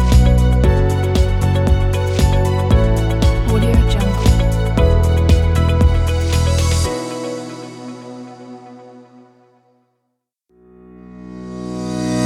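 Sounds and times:
serious corporate music: 0.0s - 9.4s.

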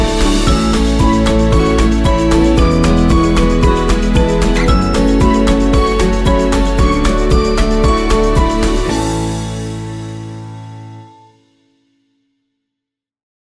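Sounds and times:
acoustic guitar playing: 0.0s - 11.4s.

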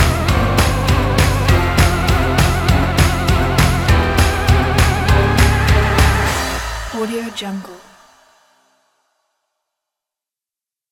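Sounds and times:
dark and fun halloween music: 0.0s - 8.0s.

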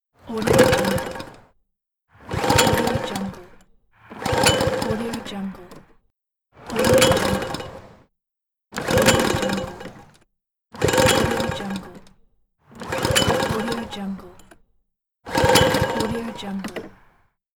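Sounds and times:
lawn mower failing to start: 0.3s - 1.5s, 2.2s - 5.9s, 6.6s - 8.0s, 8.8s - 10.2s, 10.8s - 14.6s, 15.3s - 17.1s.

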